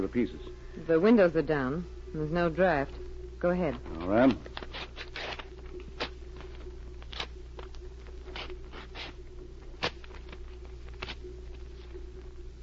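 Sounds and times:
speech: 0.0s - 4.6s
papers torn by hand into small pieces: 3.9s - 11.9s.

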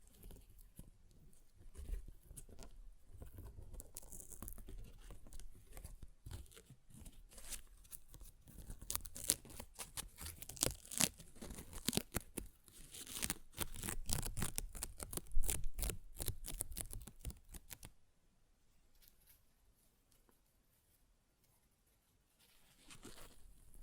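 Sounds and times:
soft rustle: 0.0s - 23.8s
paper tearing: 8.7s - 17.9s.

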